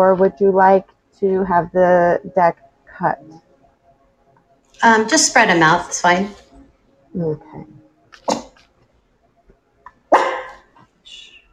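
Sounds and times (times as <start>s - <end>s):
speech: 0.0s - 3.4s, 4.8s - 6.4s, 7.1s - 7.8s
puppy barking: 10.1s - 10.6s.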